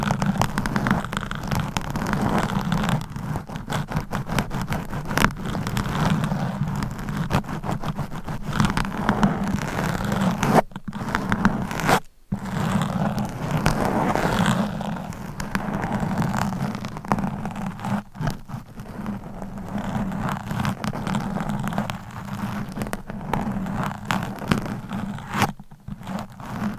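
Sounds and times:
claw scratching and massage rasping: 0:00.0 - 0:26.7.

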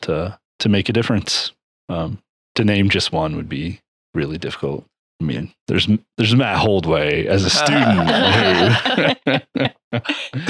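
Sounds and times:
speech: 0:00.0 - 0:10.4
laughter: 0:07.4 - 0:10.4
harsh coughing: 0:07.6 - 0:09.4, 0:10.1 - 0:10.4
choking gasp: 0:10.1 - 0:10.4.

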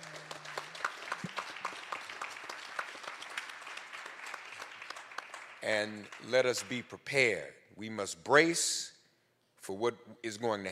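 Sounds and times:
audience applause: 0:00.0 - 0:06.8
speech: 0:05.7 - 0:08.9, 0:09.6 - 0:10.7.

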